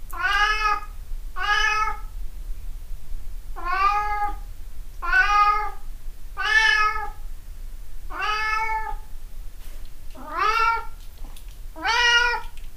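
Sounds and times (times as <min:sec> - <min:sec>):
cat meowing: 0:00.2 - 0:02.0, 0:03.6 - 0:04.4, 0:05.0 - 0:05.8, 0:06.4 - 0:07.2, 0:08.1 - 0:09.0, 0:10.2 - 0:11.0, 0:11.8 - 0:12.6.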